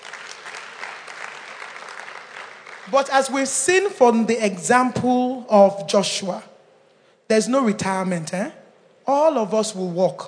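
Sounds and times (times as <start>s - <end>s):
audience applause: 0.0s - 3.2s
speech: 2.9s - 6.5s, 7.3s - 10.2s.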